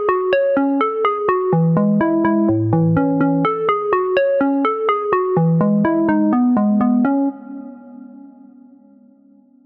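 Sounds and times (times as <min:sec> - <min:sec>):
house music: 0:00.2 - 0:07.7.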